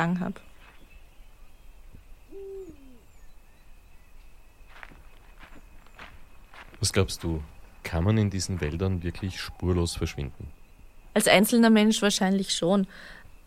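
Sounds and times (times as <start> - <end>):
speech: 0.0 - 0.5, 6.8 - 10.6, 11.2 - 13.2
insects hissing: 0.0 - 13.4
owl hooting in a forest at night: 2.2 - 3.7, 9.1 - 10.6
crunching footsteps: 4.2 - 9.3.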